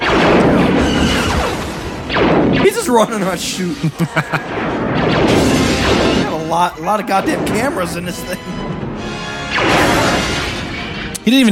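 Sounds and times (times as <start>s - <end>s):
video game explosion: 0.0s - 6.6s, 9.4s - 10.8s
laughter: 2.8s - 4.8s, 7.6s - 8.8s
speech: 2.9s - 5.4s, 6.5s - 8.4s, 11.2s - 11.5s.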